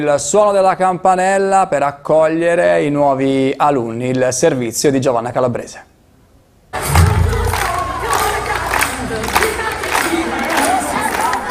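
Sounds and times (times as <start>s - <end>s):
speech: 0.0s - 5.9s
applause: 7.5s - 11.4s.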